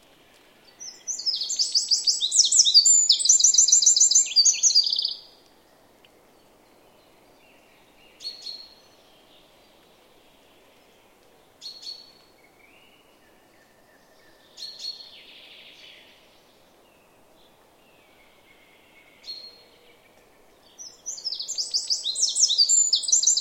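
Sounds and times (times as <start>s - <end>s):
Eurasian wren singing: 0.7s - 5.2s, 20.8s - 23.3s.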